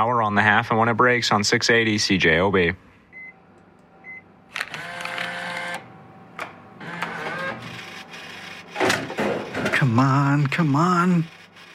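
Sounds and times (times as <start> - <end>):
speech: 0.0 - 2.9, 10.0 - 11.4
vending machine dispensing two items, whirring and clunking: 3.1 - 11.7.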